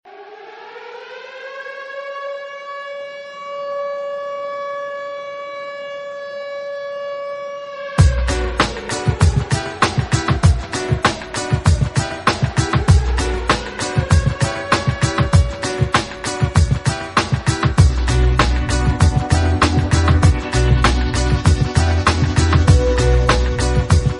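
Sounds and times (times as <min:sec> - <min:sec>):
techno alarm remix ringtone: 0:08.0 - 0:24.1.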